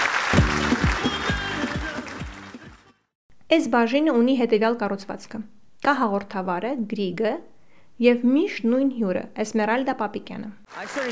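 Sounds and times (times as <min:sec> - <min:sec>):
audience applause in a TV studio: 0:00.0 - 0:02.9, 0:10.7 - 0:11.1
speech: 0:03.5 - 0:11.1.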